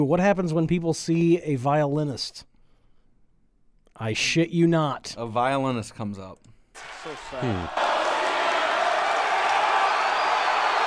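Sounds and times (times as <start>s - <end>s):
speech: 0.0s - 2.5s, 4.0s - 7.8s
crowd cheering: 6.8s - 10.8s.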